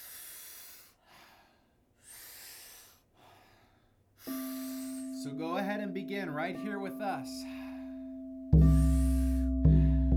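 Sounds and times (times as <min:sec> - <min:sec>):
powerful rhythmic breathwork inhales through the mouth and relaxed exhales: 0:00.0 - 0:05.2, 0:07.4 - 0:10.1
speech: 0:05.2 - 0:07.6.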